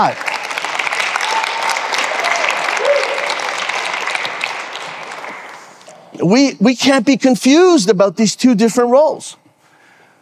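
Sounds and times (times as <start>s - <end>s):
speech: 0.0s - 0.3s, 6.2s - 9.4s
crowd clapping: 0.0s - 5.9s.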